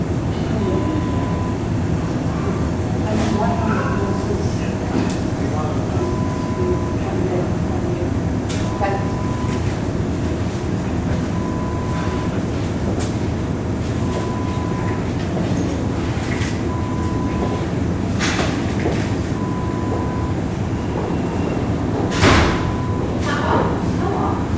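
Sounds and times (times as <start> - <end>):
hospital ambience: 0.0 - 24.5.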